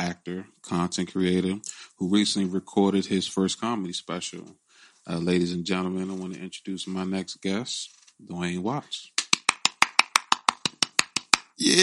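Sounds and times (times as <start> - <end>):
speech: 0.1 - 9.1, 11.6 - 11.8
hand claps: 9.2 - 11.6.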